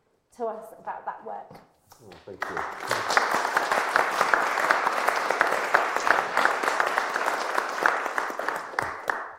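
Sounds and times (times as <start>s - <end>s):
speech: 0.4s - 3.9s
audience applause welcoming a speaker: 2.3s - 9.3s.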